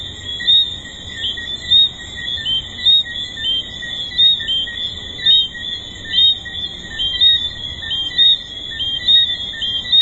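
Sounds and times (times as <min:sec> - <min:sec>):
tree frogs calling in a dense chorus at a resort: 0:00.0 - 0:10.0.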